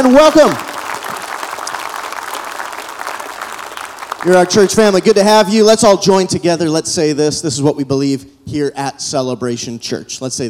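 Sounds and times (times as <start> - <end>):
speech: 0.0 - 0.7, 4.2 - 10.4
church congregation clapping to greet one another during a service: 0.0 - 5.8.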